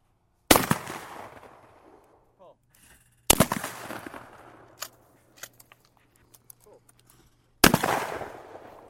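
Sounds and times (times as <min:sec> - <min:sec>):
shotgun blasts at a weekend skeet shoot at the Watertown Sportsman's Club: 0:00.5 - 0:02.0, 0:03.3 - 0:04.6, 0:07.6 - 0:08.8.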